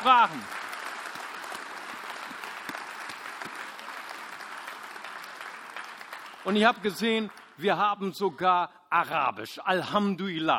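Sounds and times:
speech: 0.0 - 0.6, 6.4 - 10.5
audience applause: 0.0 - 7.8.

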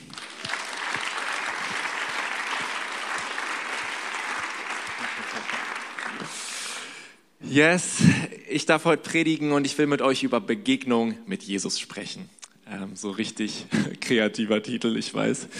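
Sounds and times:
audience applause: 0.0 - 6.8
laughter: 1.0 - 6.3
speech: 7.5 - 15.5.

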